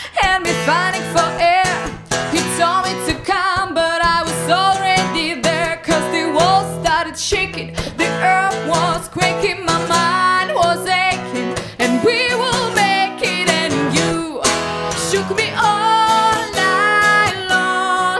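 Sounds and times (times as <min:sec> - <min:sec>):
Russian vocal: 0:00.0 - 0:18.1.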